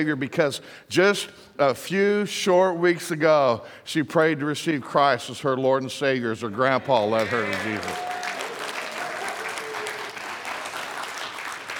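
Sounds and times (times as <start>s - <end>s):
speech: 0.0s - 8.2s
audience applause: 7.1s - 11.7s.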